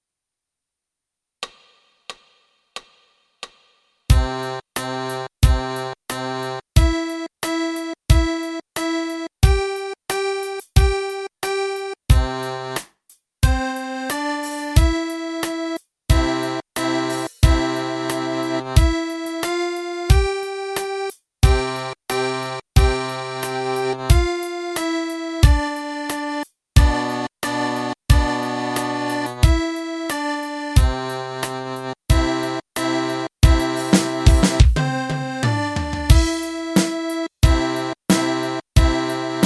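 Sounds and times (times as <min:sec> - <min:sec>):
accordion played with the right hand: 0:04.1 - 0:39.4.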